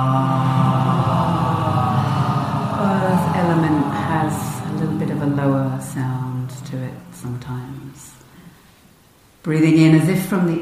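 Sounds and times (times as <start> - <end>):
group exhaling with a ha: 0.0 - 7.2
speech: 9.4 - 10.6.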